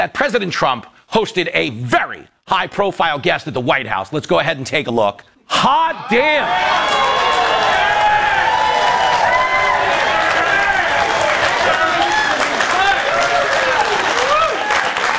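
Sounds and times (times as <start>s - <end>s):
speech: 0.0s - 7.4s
audience applause: 6.4s - 15.1s.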